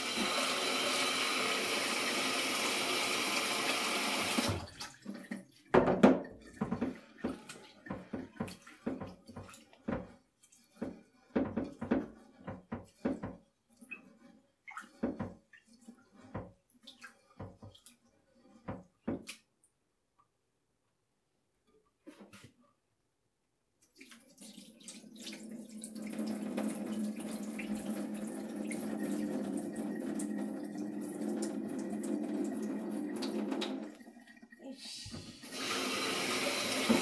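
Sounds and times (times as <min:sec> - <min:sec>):
steady rush of running water: 0:00.0 - 0:14.1, 0:24.0 - 0:37.0.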